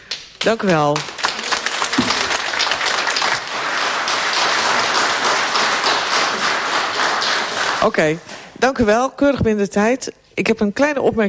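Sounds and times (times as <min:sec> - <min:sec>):
speech: 0:00.4 - 0:01.1, 0:07.8 - 0:11.2
audience applause: 0:01.0 - 0:08.2.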